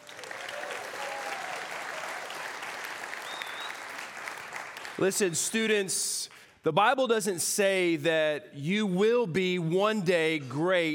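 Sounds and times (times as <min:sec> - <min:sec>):
audience applause: 0:00.0 - 0:05.1
faint audience cheers and whistles: 0:00.3 - 0:02.2, 0:03.1 - 0:04.0
speech: 0:05.0 - 0:10.9.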